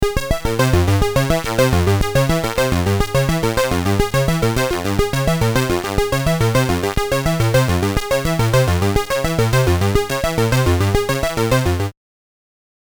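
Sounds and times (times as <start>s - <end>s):
Moog modular synthesizer: 0.0s - 11.9s.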